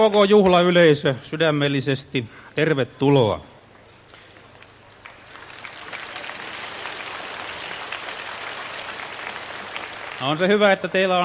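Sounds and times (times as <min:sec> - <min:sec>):
speech: 0:00.0 - 0:03.5, 0:10.2 - 0:11.2
audience applauding: 0:04.3 - 0:11.1.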